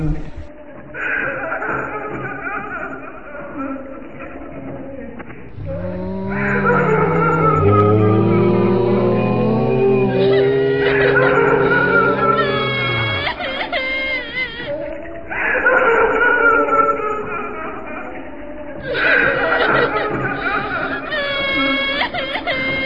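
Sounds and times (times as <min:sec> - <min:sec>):
laughter: 0:00.1 - 0:22.8
horse neighing: 0:05.6 - 0:13.6.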